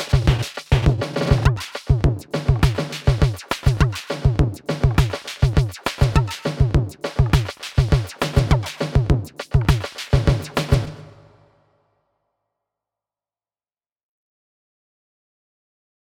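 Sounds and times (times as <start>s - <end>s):
samba reggae music: 0.0s - 11.2s.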